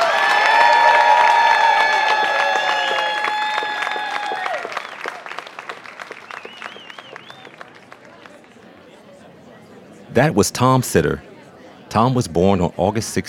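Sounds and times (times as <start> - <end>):
audience applauding and cheering for a World War II veteran and combat medic: 0.0 - 8.7
speech: 10.2 - 11.3, 11.9 - 13.2.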